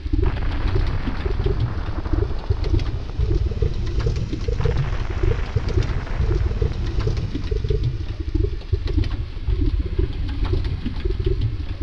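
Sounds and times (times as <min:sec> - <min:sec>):
lava: 0:00.0 - 0:11.8.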